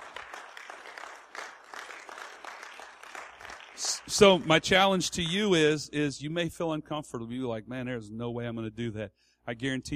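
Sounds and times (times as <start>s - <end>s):
audience clapping: 0.0s - 5.3s
speech: 3.8s - 9.9s.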